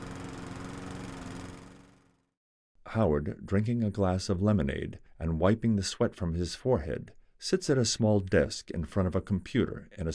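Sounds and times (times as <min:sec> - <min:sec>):
lawn mower engine running: 0:00.0 - 0:02.2
speech: 0:02.9 - 0:10.1.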